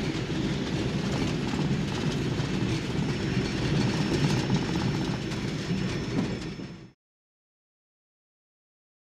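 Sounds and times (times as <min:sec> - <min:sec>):
Harvard propeller plane interior noise: 0:00.0 - 0:07.0.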